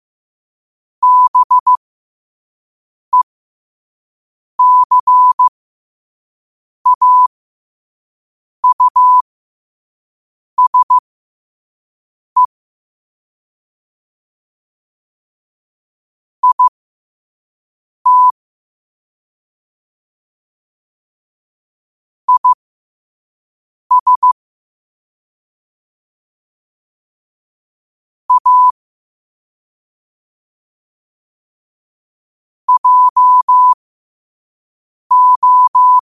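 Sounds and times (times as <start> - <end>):
morse code at 5 wpm: 1.0 - 1.8, 4.6 - 5.5, 6.9 - 7.3, 8.6 - 9.2, 10.6 - 11.0, 16.4 - 16.7, 18.1 - 18.3, 22.3 - 22.6, 23.9 - 24.4, 28.3 - 28.8, 32.7 - 33.8, 35.1 - 36.0.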